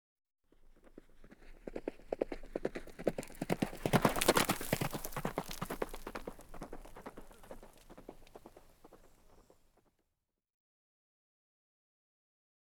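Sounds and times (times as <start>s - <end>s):
horse hoofbeats in a canter: 0.5s - 9.7s.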